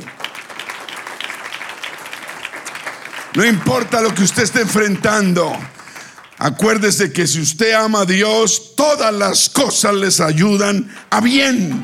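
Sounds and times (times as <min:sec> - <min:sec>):
audience applause: 0:00.0 - 0:07.0
speech: 0:03.4 - 0:05.8, 0:06.4 - 0:11.8.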